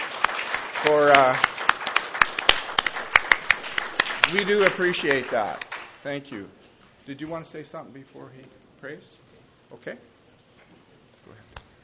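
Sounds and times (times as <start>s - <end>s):
people clapping: 0.0s - 6.1s
speech: 0.8s - 1.5s, 4.3s - 10.1s.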